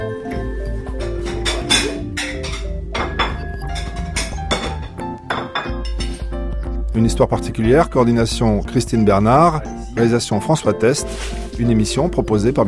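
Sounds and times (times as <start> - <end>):
china and cutlery clinking as a plate is picked up: 1.0 - 6.4
speech: 7.0 - 12.6.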